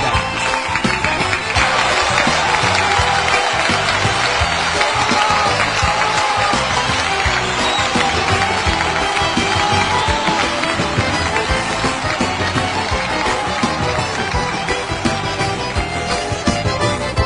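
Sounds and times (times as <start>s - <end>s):
applause: 0.0s - 17.1s.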